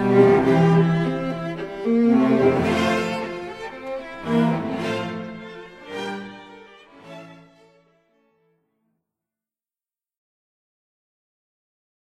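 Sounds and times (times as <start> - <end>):
string sextet playing in B flat: 0.0 - 8.4.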